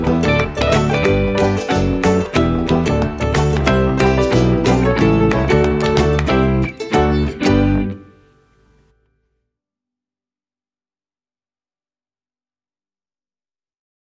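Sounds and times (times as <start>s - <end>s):
light music mix without melody: 0.0s - 8.7s.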